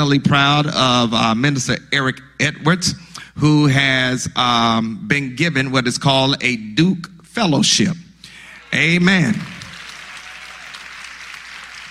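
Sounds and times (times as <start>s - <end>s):
speech: 0.0s - 8.0s, 8.7s - 9.6s
audience clapping: 8.5s - 11.8s.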